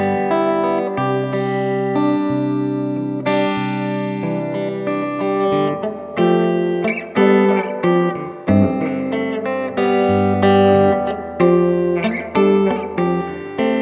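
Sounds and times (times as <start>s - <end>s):
clean electric guitar: 0.0s - 13.8s.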